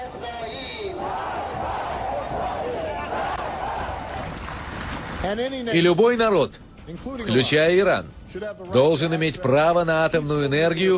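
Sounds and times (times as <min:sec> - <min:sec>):
crowd shouting slogans together: 0:00.0 - 0:04.8
speech: 0:05.2 - 0:10.9.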